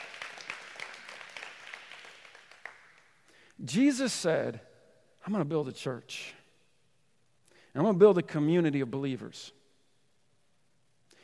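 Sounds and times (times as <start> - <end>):
audience applause: 0.0 - 3.0
speech: 3.6 - 6.4, 7.7 - 9.6.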